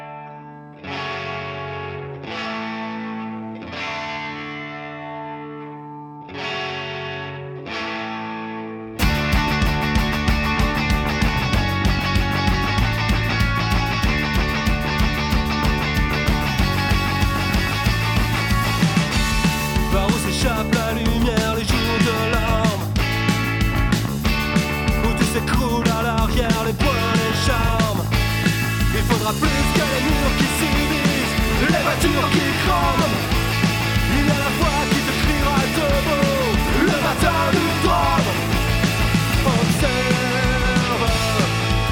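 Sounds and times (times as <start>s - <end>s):
French-language punk rock song: 0.0s - 41.8s
distorted guitars: 0.0s - 41.8s
driving drums: 9.0s - 41.8s.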